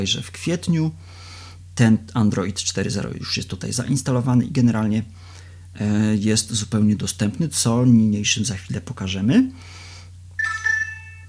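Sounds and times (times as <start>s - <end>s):
speech: 0.0s - 1.2s, 1.8s - 9.8s
phone notification tones for incoming messages: 10.4s - 11.2s.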